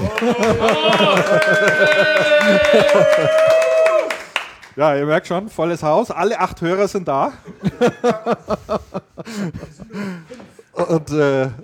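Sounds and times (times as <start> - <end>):
laughter: 0.0 - 4.1, 7.3 - 10.7
clapping: 0.0 - 4.8
speech: 0.2 - 3.6, 4.8 - 11.6.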